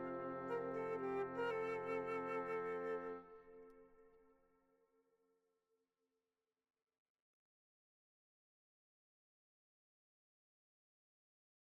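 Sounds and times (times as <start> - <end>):
woodwind quartet playing: 0.0 - 3.7.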